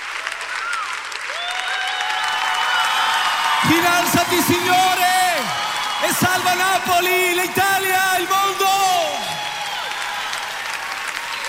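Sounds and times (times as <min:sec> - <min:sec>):
applause from a crowd: 0:00.0 - 0:11.4
speech: 0:03.7 - 0:08.4.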